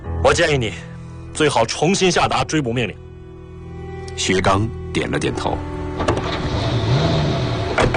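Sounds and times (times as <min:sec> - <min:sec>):
speech: 0:00.3 - 0:03.0, 0:04.2 - 0:06.4
car doors shutting: 0:06.0 - 0:07.9.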